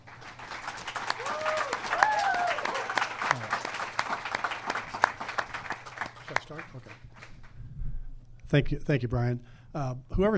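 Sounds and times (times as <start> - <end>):
audience applause: 0.0 - 7.5
speech: 8.5 - 10.3.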